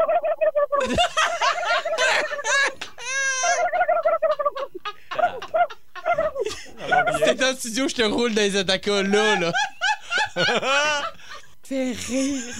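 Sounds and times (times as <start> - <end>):
speech: 0.8 - 1.3, 7.6 - 9.7, 10.4 - 11.1, 11.7 - 12.5
laughter: 0.8 - 12.5
man imitating a turkey gobbling: 3.1 - 4.6, 5.2 - 7.3.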